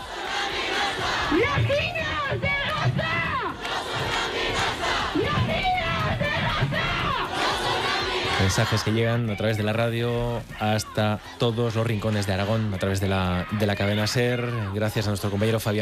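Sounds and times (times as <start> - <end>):
protest crowd chanting slogans: 0.0 - 15.7
speech: 8.4 - 15.7.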